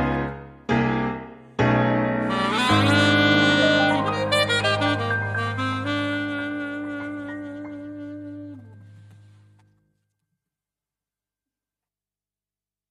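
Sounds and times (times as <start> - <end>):
piano: 0.0 - 10.0
saxophone: 2.2 - 9.6.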